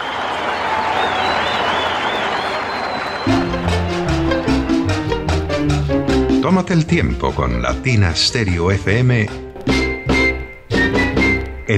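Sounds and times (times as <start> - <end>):
whistle: 0.0 - 3.9, 9.8 - 11.7
crowd applauding: 0.0 - 5.9
speech: 6.5 - 9.8.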